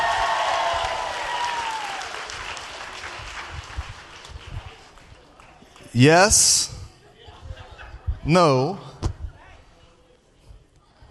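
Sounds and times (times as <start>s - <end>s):
audience clapping for a performer: 0.0s - 5.9s
crowd noise: 0.0s - 11.0s
speech: 6.0s - 6.8s, 8.2s - 8.9s.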